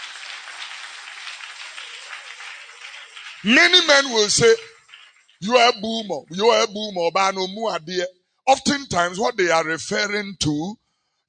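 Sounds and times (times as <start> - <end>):
audience clapping hands: 0.0 - 7.8
speech: 3.4 - 4.7, 5.4 - 11.2.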